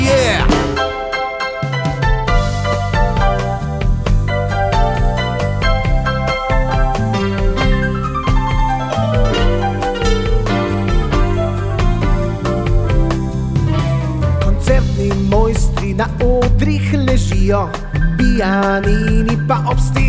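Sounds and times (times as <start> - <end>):
piano: 0.0 - 20.0.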